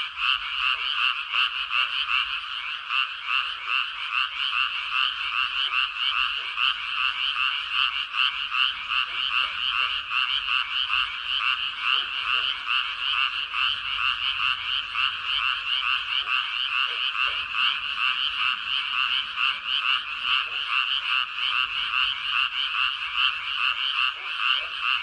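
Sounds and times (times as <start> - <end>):
frog chorus: 0.0 - 25.0.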